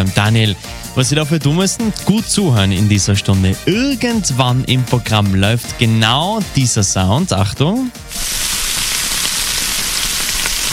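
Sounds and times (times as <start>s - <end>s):
speech: 0.1s - 8.5s
meat sizzling on a grill: 8.1s - 10.7s.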